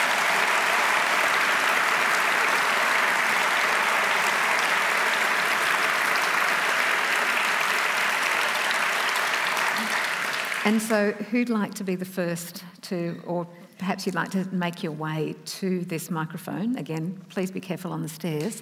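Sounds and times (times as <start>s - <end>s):
audience applause: 0.0s - 11.2s
speech: 10.6s - 18.5s.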